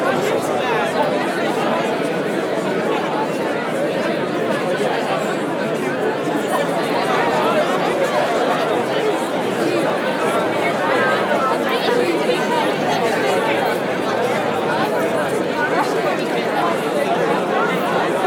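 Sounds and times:
busy outdoor crowd gathering walla: 0.0s - 18.2s.

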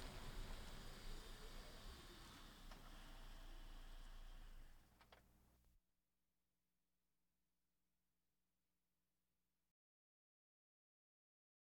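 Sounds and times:
various automobiles: 0.0s - 4.7s.

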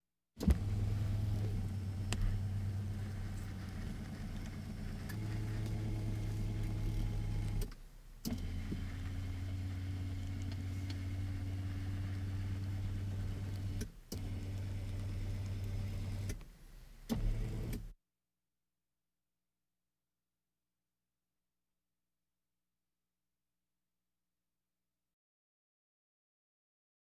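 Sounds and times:
various automobiles: 0.4s - 17.9s.

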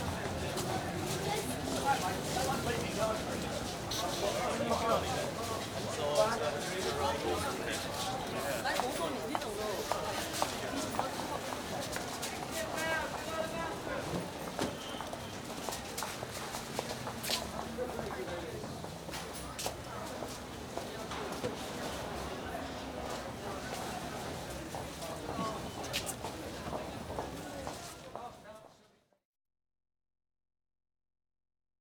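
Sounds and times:
street market crowd in London: 0.0s - 29.0s.

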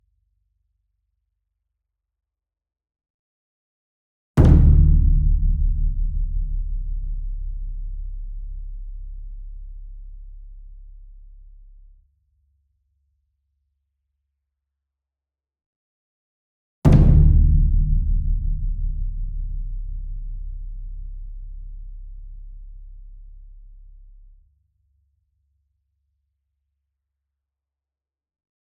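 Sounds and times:
ensemble concert bass drum and taiko drum flam: 4.4s - 9.2s, 16.9s - 22.2s.

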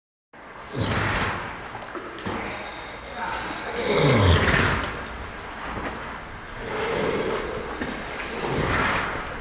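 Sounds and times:
farm animal snorts: 0.6s - 5.1s, 6.6s - 9.3s
farm animal grunts: 0.6s - 5.9s, 6.5s - 9.3s.

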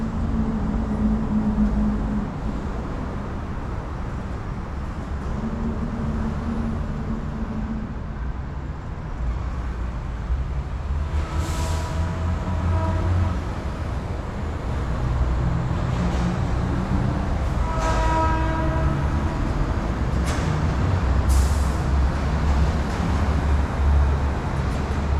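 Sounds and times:
train: 0.0s - 25.1s
truck horns: 11.1s - 13.8s, 17.4s - 19.9s.

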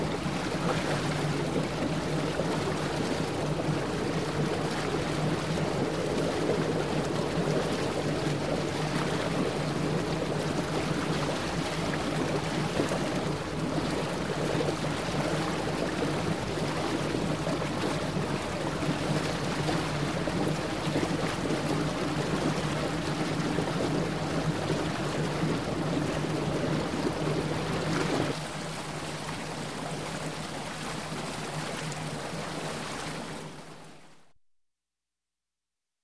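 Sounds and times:
lake water: 0.0s - 34.3s.

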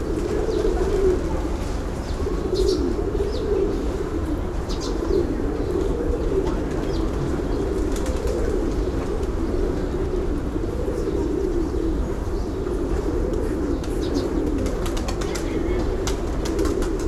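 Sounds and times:
pigeons cooing: 0.0s - 17.0s.

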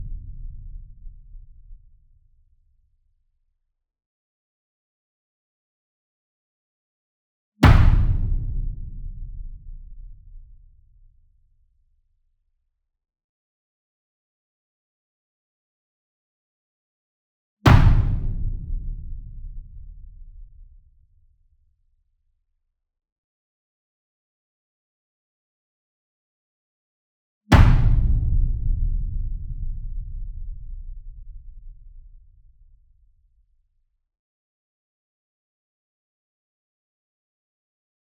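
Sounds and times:
single 66 inch drum hit hard with beater: 7.6s - 10.2s, 17.7s - 20.0s, 27.5s - 31.3s.

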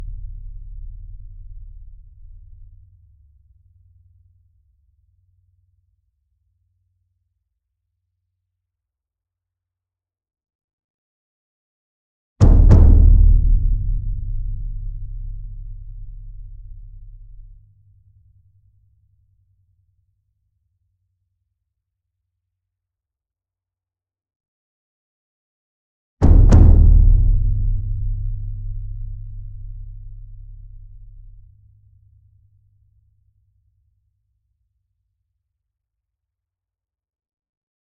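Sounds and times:
large double concert bass drum: 12.4s - 17.4s, 26.2s - 31.4s.

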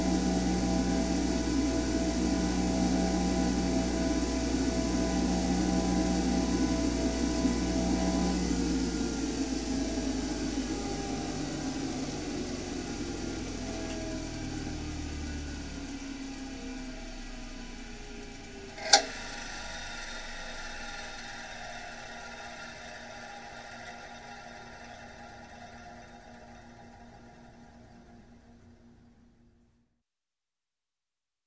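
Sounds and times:
construction grinder starting running and stopping: 0.0s - 28.7s.

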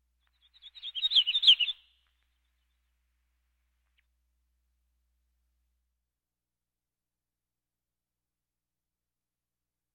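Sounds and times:
birds: 0.4s - 1.9s.

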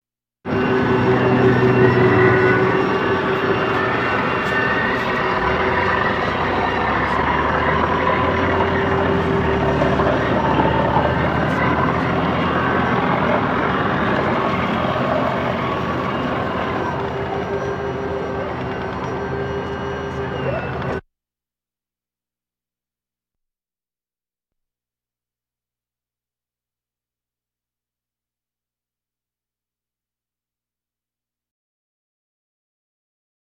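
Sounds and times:
military vehicles: 0.5s - 21.0s.

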